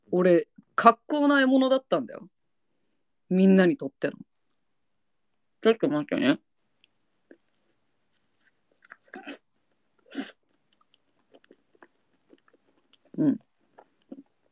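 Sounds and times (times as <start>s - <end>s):
speech: 0.1s - 2.4s, 3.3s - 4.3s, 5.6s - 6.4s, 10.2s - 10.4s, 13.2s - 13.4s
mouth clicks and smacks eating ice cream with whipped cream: 6.8s - 14.4s.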